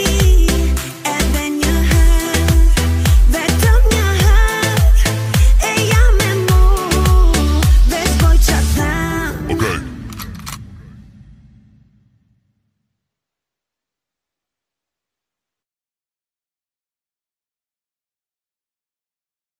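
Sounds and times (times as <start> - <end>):
bass music: 0.0 - 10.9.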